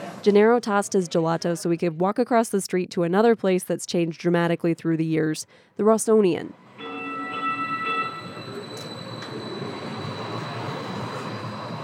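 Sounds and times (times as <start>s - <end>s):
speech: 0.2s - 6.6s
light rail train rumbling: 6.6s - 11.8s
high whine: 6.7s - 11.8s
light rail train horn blast: 6.8s - 8.4s.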